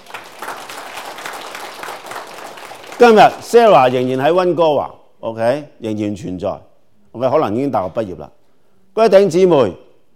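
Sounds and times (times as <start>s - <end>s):
crowd applauding: 0.0s - 4.1s
speech: 3.0s - 8.4s, 9.0s - 9.8s.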